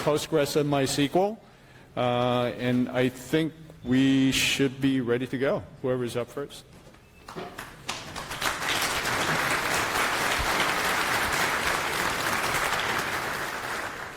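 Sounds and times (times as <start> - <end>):
speech: 0.0 - 6.7, 7.3 - 7.7
audience applause: 7.9 - 14.1.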